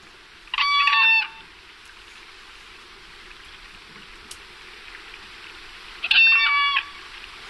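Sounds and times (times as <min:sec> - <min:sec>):
quiet hiss: 0:00.0 - 0:07.4
whooping crane calls: 0:00.5 - 0:01.4, 0:06.0 - 0:07.0.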